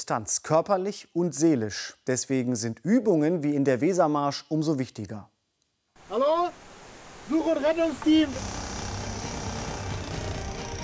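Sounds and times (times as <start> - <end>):
speech: 0.0 - 5.3, 7.3 - 8.6
sawing through wooden boards: 7.9 - 10.8.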